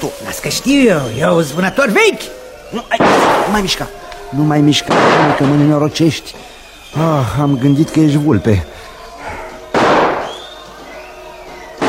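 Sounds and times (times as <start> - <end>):
speech: 0.0 - 8.8
shotgun blast: 3.0 - 3.6, 4.9 - 5.6, 9.7 - 10.4.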